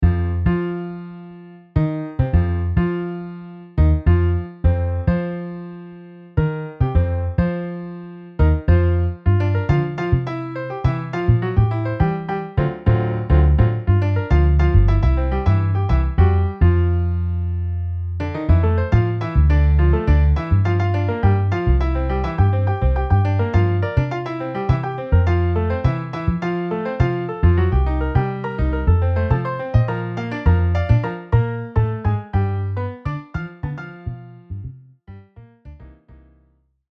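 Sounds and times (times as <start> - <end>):
MIDI piano and bass: 0.0 - 36.9.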